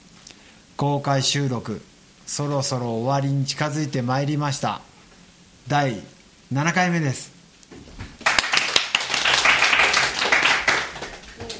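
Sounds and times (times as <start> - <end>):
speech: 0.8 - 4.9, 5.6 - 7.8
audience clapping: 8.2 - 11.5.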